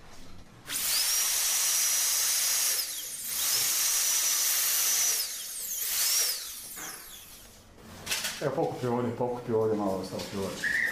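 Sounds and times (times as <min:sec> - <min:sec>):
high-pitched dental drill with bur whining: 0:00.7 - 0:07.6
speech: 0:08.4 - 0:10.8.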